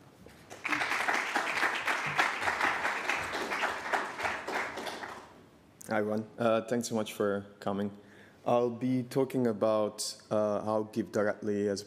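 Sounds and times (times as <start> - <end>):
audience applause: 0.5 - 5.3
speech: 5.9 - 11.8.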